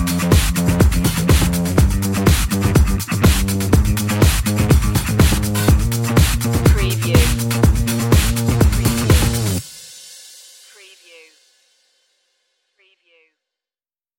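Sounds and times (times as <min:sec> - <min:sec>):
bass: 0:00.0 - 0:09.6
drums: 0:00.0 - 0:12.2.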